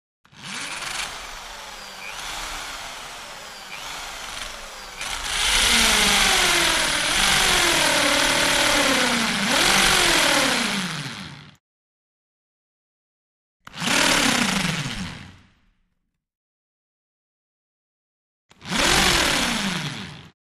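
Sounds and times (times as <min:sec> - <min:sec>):
hand drill impact run: 0:00.3 - 0:11.5, 0:13.7 - 0:15.3, 0:18.6 - 0:20.2.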